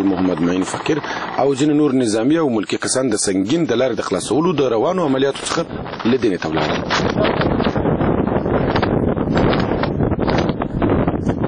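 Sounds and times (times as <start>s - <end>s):
speech: 0.0s - 7.7s
desert wind blowing dust across open ground in Helmand: 0.0s - 11.4s.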